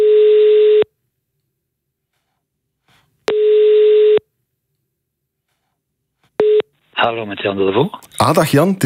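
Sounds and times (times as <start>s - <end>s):
telephone ringback tone while placing a call: 3.3s - 4.2s, 6.4s - 6.7s
speech: 7.0s - 8.8s.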